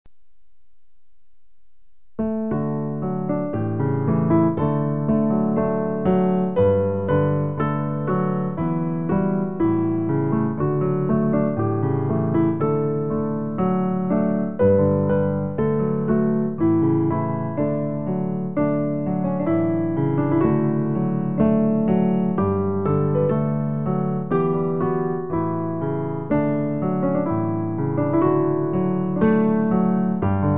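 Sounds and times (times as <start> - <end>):
piano: 0.1 - 30.5.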